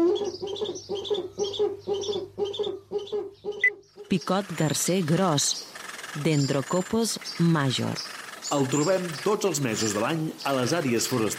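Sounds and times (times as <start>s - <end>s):
Eurasian eagle-owl hooting: 0.0s - 11.3s
speech: 4.1s - 11.3s.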